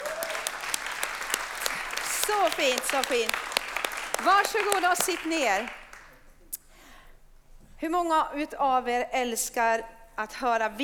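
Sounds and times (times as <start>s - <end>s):
warm applause from an audience: 0.0s - 6.1s
speech: 2.3s - 3.4s, 4.2s - 5.8s, 7.8s - 10.8s.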